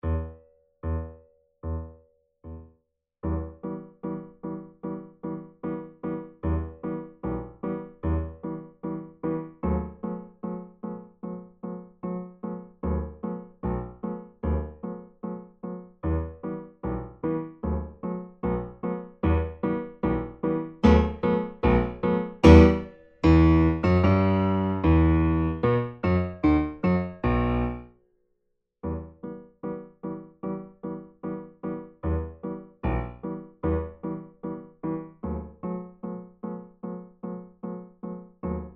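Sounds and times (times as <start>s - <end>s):
secondo part of piano four-hands practice pieces: 0.0s - 27.9s, 28.8s - 38.7s.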